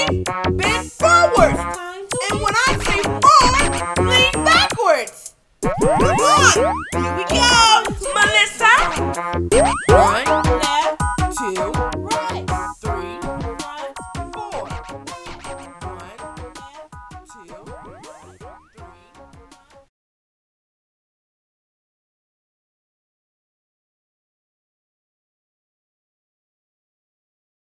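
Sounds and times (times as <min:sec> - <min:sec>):
exercise song: 0:00.0 - 0:19.9.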